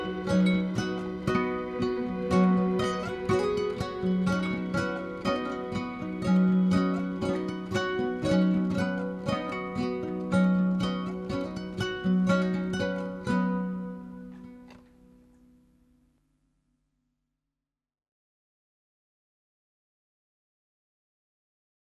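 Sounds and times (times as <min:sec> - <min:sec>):
guitar melody: 0:00.0 - 0:15.3.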